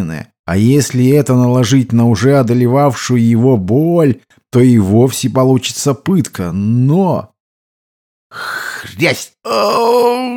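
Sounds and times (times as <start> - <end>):
speech: 0.0 - 7.3, 8.3 - 10.3
man groaning in pain: 9.4 - 10.3.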